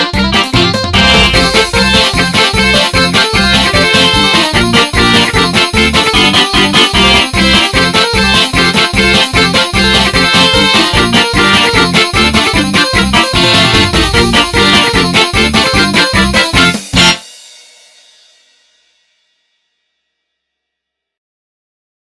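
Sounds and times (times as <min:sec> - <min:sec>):
hard rock Christmas song: 0:00.0 - 0:17.2.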